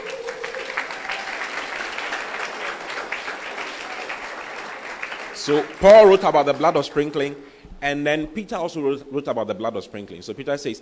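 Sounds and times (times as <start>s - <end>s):
audience clapping: 0.0s - 7.4s
speech: 5.5s - 10.8s.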